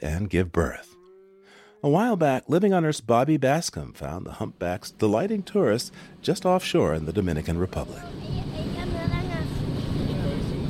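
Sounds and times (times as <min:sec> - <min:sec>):
speech: 0:00.0 - 0:00.9, 0:01.8 - 0:08.7
whale-watching boat engine rumble out at sea: 0:04.5 - 0:10.6
wind: 0:05.0 - 0:10.6
faint voices of passengers: 0:08.0 - 0:10.6.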